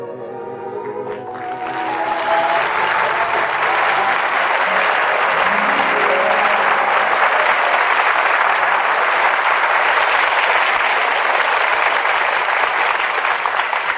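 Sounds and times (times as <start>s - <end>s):
applause from an audience outside: 0.8s - 13.9s.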